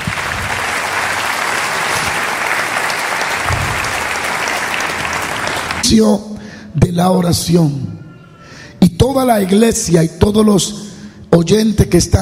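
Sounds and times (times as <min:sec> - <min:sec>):
audience applauding: 0:00.0 - 0:05.9
speech: 0:05.9 - 0:08.0, 0:09.0 - 0:12.2.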